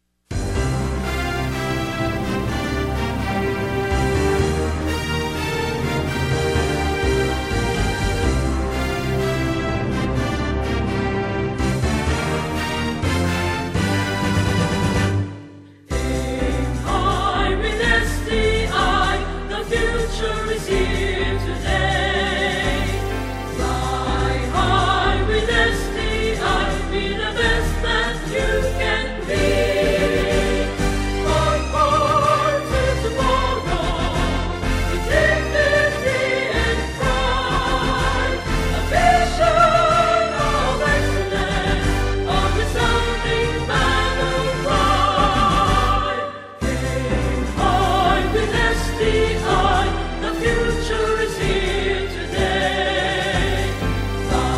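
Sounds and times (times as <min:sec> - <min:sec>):
alma mater hymn: 0:00.6 - 0:54.5.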